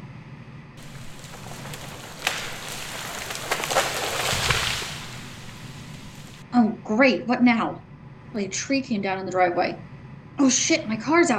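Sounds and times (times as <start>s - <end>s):
storm with rain: 0.8s - 6.4s
speech: 6.5s - 11.3s.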